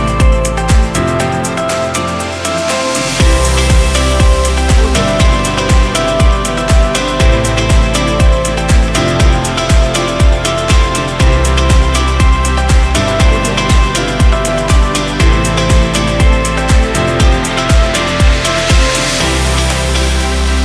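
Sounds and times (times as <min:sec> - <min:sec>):
corporate background music: 0:00.0 - 0:20.6.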